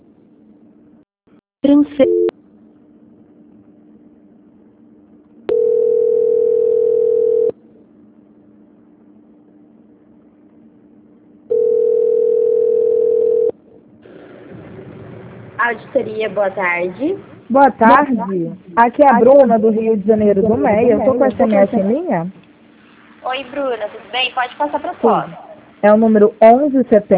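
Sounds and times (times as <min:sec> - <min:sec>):
speech: 0:01.6 - 0:02.3, 0:15.9 - 0:22.4, 0:23.4 - 0:27.1
telephone line hum: 0:01.6 - 0:27.1
telephone ringing tone on the line while waiting: 0:05.5 - 0:07.6, 0:11.5 - 0:13.6.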